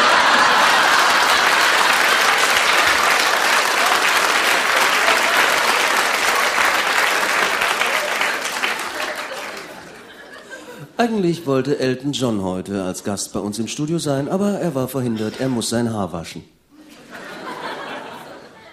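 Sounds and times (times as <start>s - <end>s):
audience applause: 0.0s - 10.6s
laughter: 0.0s - 11.0s, 15.0s - 15.9s, 16.8s - 18.7s
speech: 11.0s - 16.6s.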